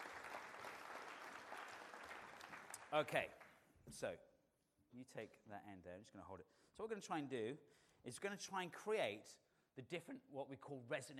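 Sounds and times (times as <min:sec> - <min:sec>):
crowd applause for volunteer: 0:00.0 - 0:03.3
speech: 0:02.9 - 0:04.3, 0:04.9 - 0:11.1.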